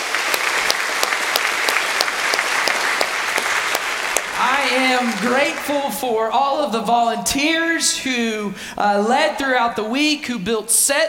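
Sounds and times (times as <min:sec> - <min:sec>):
audience applause: 0:00.0 - 0:05.9
speech: 0:05.0 - 0:11.0.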